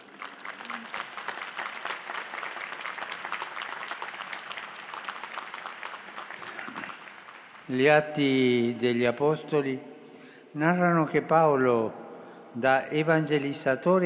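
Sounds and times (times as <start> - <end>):
applause from a large audience: 0.0 - 7.8
speech: 7.7 - 9.9, 10.6 - 14.0.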